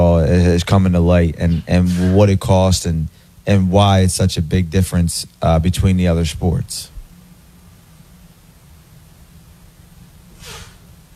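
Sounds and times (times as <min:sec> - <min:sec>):
low steady hum: 0:00.0 - 0:11.1
speech: 0:00.5 - 0:06.9
person sneezing from allergies: 0:10.4 - 0:10.8.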